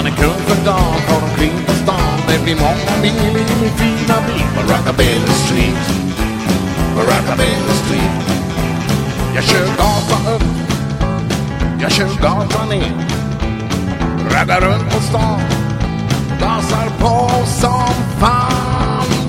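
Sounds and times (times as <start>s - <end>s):
rockabilly music in the street: 0.0s - 19.2s.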